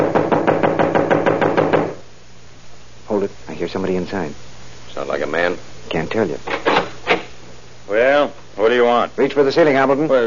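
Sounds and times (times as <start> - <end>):
knocking on a door: 0.0 - 2.0
speech: 3.7 - 6.6, 7.9 - 10.2.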